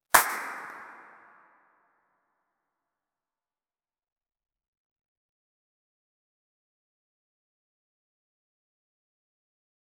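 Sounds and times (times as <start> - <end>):
echoed musical clap: 0.1 - 1.6.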